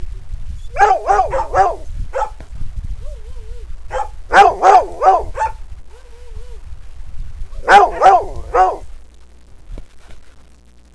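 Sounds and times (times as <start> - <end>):
barking: 0.8 - 2.4, 3.9 - 5.6, 7.6 - 8.9.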